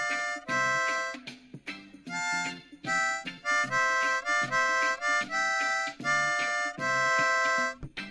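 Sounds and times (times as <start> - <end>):
10 hole harmonica: 0.0 - 8.0.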